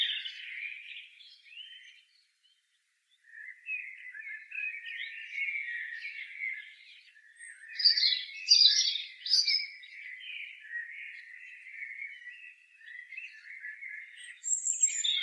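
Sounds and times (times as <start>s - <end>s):
European robin singing: 0.0s - 15.2s.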